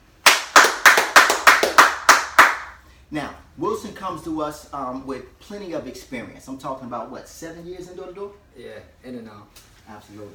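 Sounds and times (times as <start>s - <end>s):
audience applause: 0.6s - 2.6s
speech: 3.1s - 10.3s.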